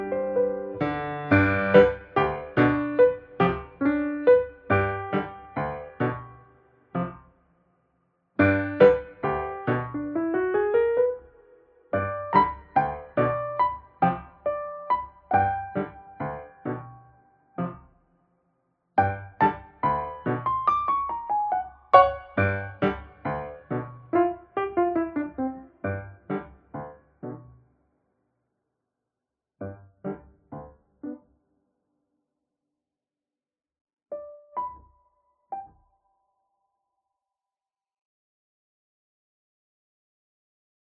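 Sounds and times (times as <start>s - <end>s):
piano cover: 0.0s - 7.2s, 8.4s - 17.8s, 19.0s - 27.6s.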